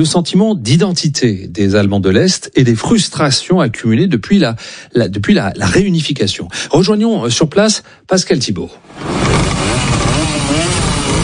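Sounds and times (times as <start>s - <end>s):
speech: 0.0s - 10.6s
hundreds of old East German Simson, Schwalbe and MZ mopeds and motorcycles starting: 9.0s - 11.2s.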